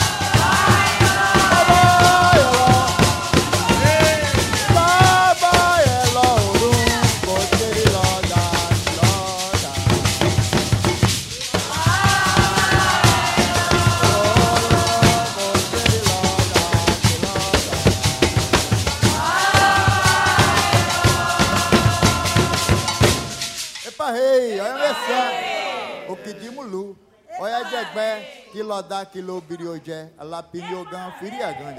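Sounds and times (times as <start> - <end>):
toada for Iansa at a terreiro: 0.0 - 29.3.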